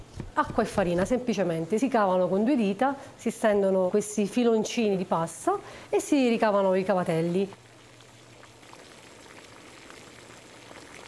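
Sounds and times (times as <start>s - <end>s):
speech: 0.4s - 7.6s
pot of water at a rolling boil: 3.8s - 11.0s.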